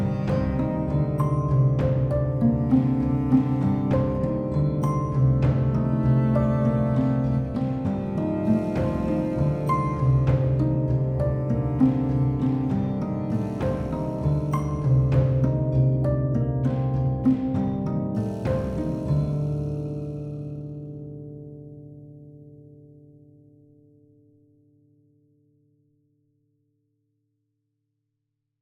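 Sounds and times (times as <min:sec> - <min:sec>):
harp: 0:00.0 - 0:21.5.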